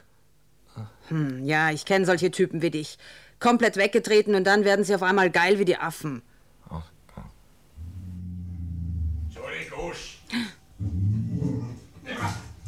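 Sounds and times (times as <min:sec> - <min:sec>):
speech: 0:00.8 - 0:06.9
dog growling and barking: 0:07.8 - 0:09.6, 0:10.8 - 0:12.6.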